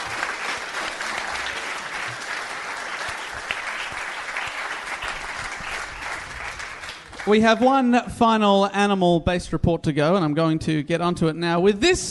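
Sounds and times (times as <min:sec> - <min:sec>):
crowd applause: 0:00.0 - 0:07.7
speech: 0:07.3 - 0:12.0.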